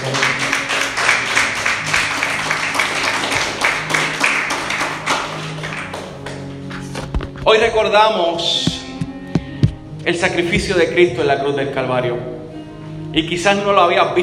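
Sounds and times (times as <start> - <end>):
audience applause: 0.0 - 6.6
speech: 7.5 - 8.8, 10.0 - 12.4, 13.2 - 14.2.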